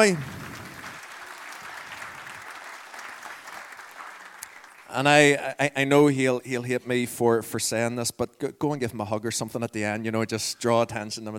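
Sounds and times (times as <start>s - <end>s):
speech: 0.0s - 0.4s, 4.9s - 11.3s
audience applause: 0.0s - 5.3s.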